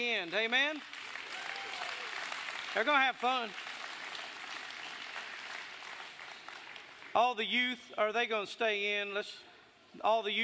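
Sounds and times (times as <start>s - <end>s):
speech: 0.0s - 1.0s, 2.8s - 3.7s, 7.2s - 10.4s
audience applause: 0.8s - 7.1s.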